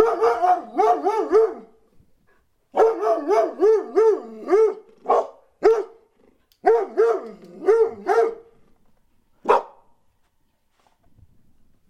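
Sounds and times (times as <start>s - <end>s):
dog barking: 0.0s - 1.7s, 2.7s - 6.0s, 6.6s - 8.5s, 9.4s - 9.9s.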